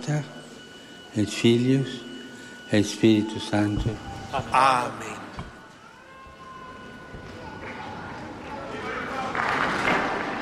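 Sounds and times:
speech: 0.0 - 0.4, 1.1 - 2.1, 2.7 - 5.2
crowd applause: 6.8 - 10.4.

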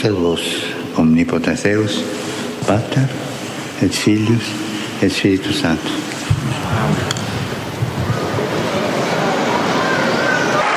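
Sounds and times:
speech: 0.0 - 7.3
faint murmur of voices: 0.0 - 10.7
thunderous applause from a vast crowd in St. Peter's Square: 6.4 - 10.7.

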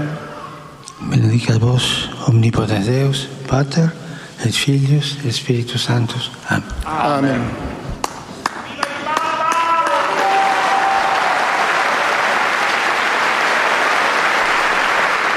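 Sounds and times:
speech: 1.0 - 7.8
pilgrims applauding Pope Francis after his blessing: 8.0 - 15.3.

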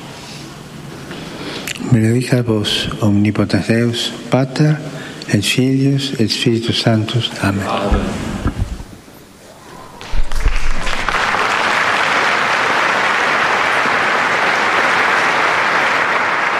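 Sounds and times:
speech: 1.9 - 8.3
pilgrims applauding in the Paul VI Audience Hall after a papal blessing: 9.8 - 16.5.

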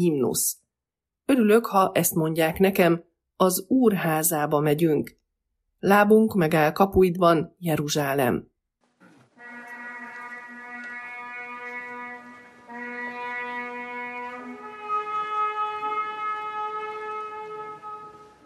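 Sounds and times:
speech: 0.0 - 0.6, 1.3 - 5.2, 5.8 - 8.5
ceremonial horn blasts with a rich buzzing tone: 9.0 - 18.4.

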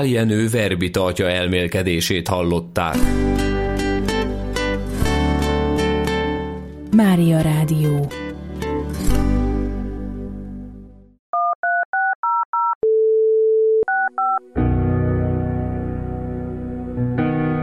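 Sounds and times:
speech: 0.0 - 3.5, 7.0 - 8.2
music: 2.8 - 11.2, 14.1 - 17.6
two-tone telephone keypad beeps: 11.4 - 14.4
telephone dial tone: 11.4 - 14.5.

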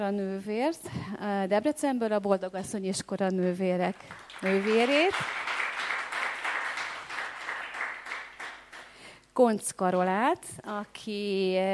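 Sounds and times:
speech: 0.0 - 5.6, 9.4 - 11.7
audience applause: 4.0 - 8.9.

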